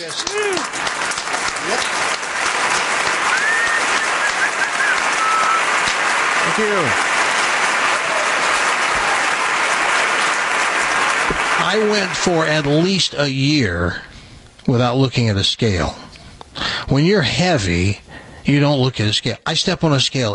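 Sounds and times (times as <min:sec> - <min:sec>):
speech: 0:00.0 - 0:02.0, 0:06.6 - 0:07.1, 0:11.7 - 0:14.1, 0:14.7 - 0:16.0, 0:16.9 - 0:20.3
audience applause: 0:00.0 - 0:12.9
faint whistles: 0:03.3 - 0:05.8.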